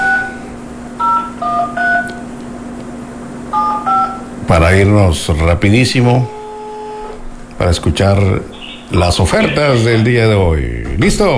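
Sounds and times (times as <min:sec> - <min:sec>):
steady low electrical hum: 0:00.0 - 0:11.3
telephone keypad dual-tone beeps: 0:01.0 - 0:02.2, 0:03.5 - 0:04.3
speech: 0:04.5 - 0:06.4, 0:07.6 - 0:11.3.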